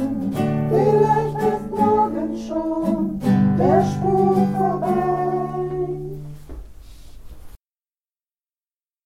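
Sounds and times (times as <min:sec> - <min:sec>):
individual voices singing a refrain: 0:00.0 - 0:06.4.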